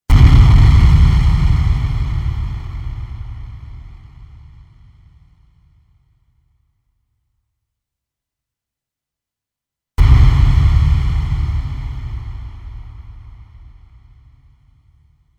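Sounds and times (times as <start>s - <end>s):
explosions: 0.1s - 4.4s, 10.0s - 14.2s.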